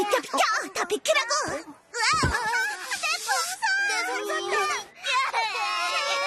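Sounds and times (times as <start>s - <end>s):
speech: 0.1s - 2.5s
child crying: 4.0s - 6.2s.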